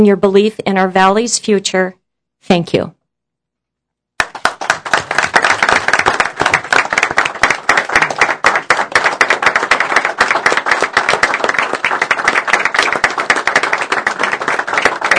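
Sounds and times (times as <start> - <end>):
speech: 0.0 - 3.0
audience applause: 4.2 - 15.1.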